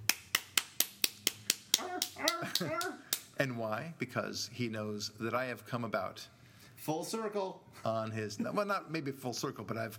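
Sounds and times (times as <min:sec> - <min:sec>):
vigorous clapping: 0:00.0 - 0:03.3
speech: 0:02.6 - 0:09.9.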